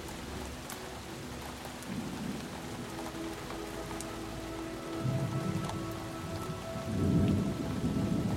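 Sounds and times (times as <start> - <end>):
steady warm summer rain: 0.0 - 8.3
deep rolling rumbles of thunder: 5.0 - 8.3.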